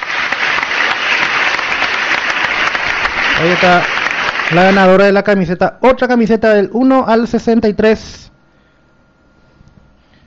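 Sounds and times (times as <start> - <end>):
applause: 0.0 - 5.1
speech: 3.4 - 8.3.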